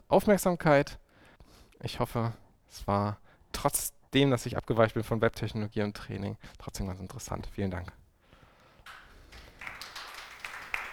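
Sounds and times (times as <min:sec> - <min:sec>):
speech: 0:00.1 - 0:01.0, 0:01.8 - 0:08.0
faint audience applause: 0:08.9 - 0:10.9.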